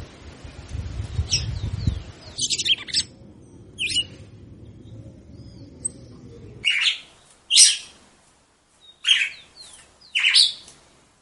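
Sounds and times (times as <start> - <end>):
red-cowled cardinal singing chirped notes: 0.9 - 8.0, 8.8 - 10.7.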